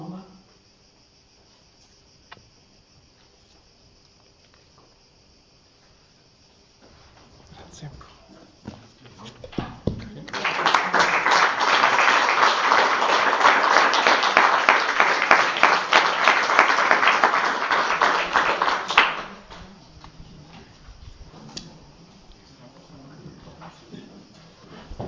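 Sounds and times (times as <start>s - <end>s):
audience applause: 9.5s - 20.1s.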